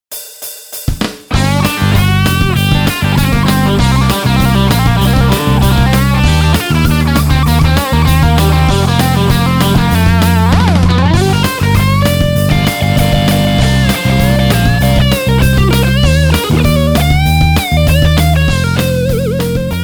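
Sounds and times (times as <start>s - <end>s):
synth patch demo: 1.4s - 19.8s.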